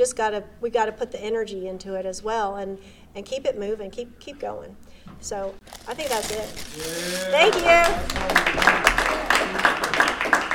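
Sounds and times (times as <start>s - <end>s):
speech: 0.0s - 9.9s
audience applause: 6.8s - 10.5s.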